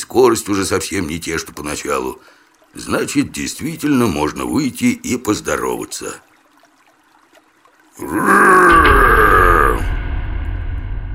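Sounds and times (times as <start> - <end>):
speech: 0.1 - 6.3, 8.0 - 9.9
monster's battle roar: 8.0 - 9.9.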